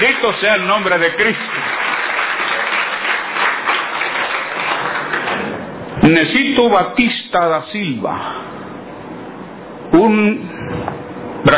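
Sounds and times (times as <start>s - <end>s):
speech: 0.0s - 1.8s, 6.1s - 8.5s, 9.9s - 11.5s
crowd applauding: 0.0s - 5.6s.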